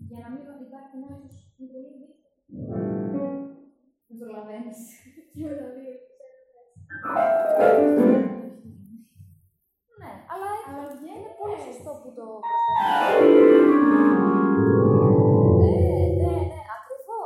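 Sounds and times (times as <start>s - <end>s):
synthesizer experimentation: 2.6s - 3.6s, 6.9s - 8.6s, 12.4s - 16.6s.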